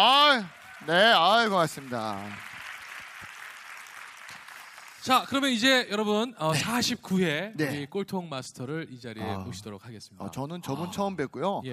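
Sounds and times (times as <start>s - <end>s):
speech: 0.0s - 2.5s, 5.0s - 11.7s
crowd applause: 0.0s - 5.3s.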